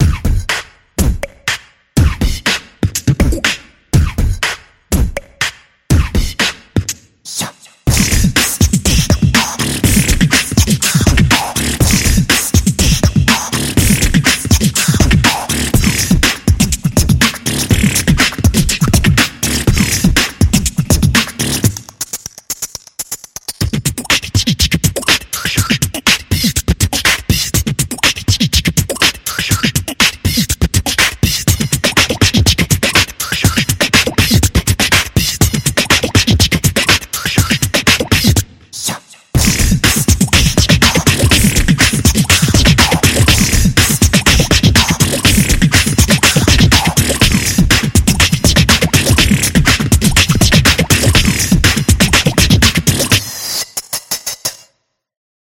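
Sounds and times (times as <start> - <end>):
beatbox: 0.0 - 54.7.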